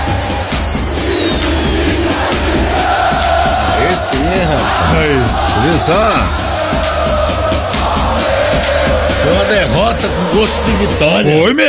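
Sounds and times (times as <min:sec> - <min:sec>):
football crowd cheering: 0:00.0 - 0:11.2
speech: 0:04.3 - 0:07.2, 0:08.6 - 0:11.6.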